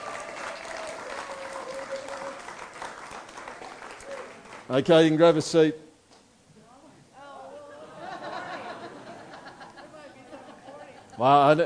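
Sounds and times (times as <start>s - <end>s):
audience applauding: 0.0s - 4.9s
speech: 4.7s - 5.8s, 11.2s - 11.6s
laughter: 7.7s - 11.6s.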